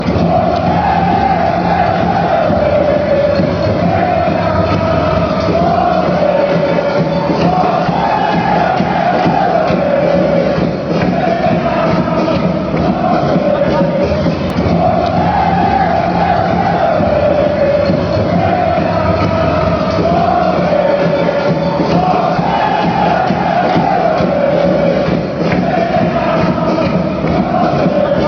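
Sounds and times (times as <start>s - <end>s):
football fans chanting: 0.0s - 28.2s.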